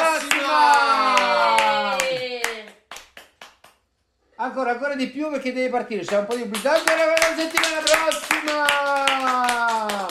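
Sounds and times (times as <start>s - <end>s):
rhythmic hand claps: 0.0s - 3.9s, 5.9s - 10.0s
speech: 4.5s - 10.0s.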